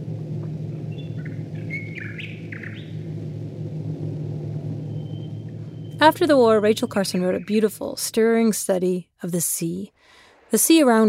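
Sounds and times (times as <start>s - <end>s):
Royal Air Force bomber planes droning overhead: 0.0s - 8.5s
birdsong trills and chirps: 0.9s - 3.0s, 6.8s - 7.8s
speech: 6.0s - 11.0s.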